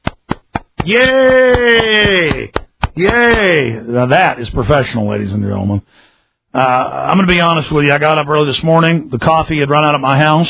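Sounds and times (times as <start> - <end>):
group clapping hands: 0.0 - 3.6
speech: 0.8 - 10.4.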